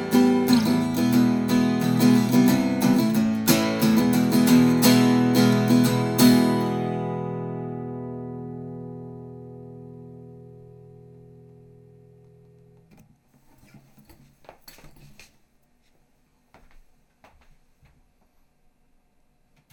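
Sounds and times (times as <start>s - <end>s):
guitar test through electret microphone: 0.0s - 12.9s.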